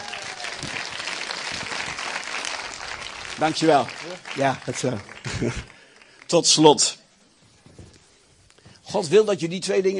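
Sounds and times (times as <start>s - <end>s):
audience applause: 0.0s - 6.6s
speech: 3.4s - 5.7s, 6.3s - 7.0s, 8.9s - 9.9s
laughter: 5.1s - 5.8s.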